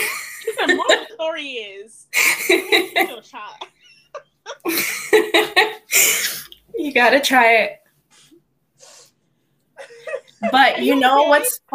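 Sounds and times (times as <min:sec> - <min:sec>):
laughter: 0:00.0 - 0:01.2, 0:02.2 - 0:05.8, 0:09.8 - 0:11.7
speech: 0:00.6 - 0:03.7, 0:04.6 - 0:07.8, 0:10.1 - 0:11.7
person sniffling: 0:05.9 - 0:06.5, 0:08.1 - 0:09.2.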